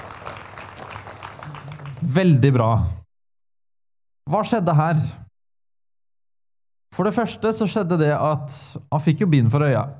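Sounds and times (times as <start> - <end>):
audience applause: 0.0 - 2.2
speech: 2.1 - 3.0, 4.3 - 5.2, 7.0 - 9.9.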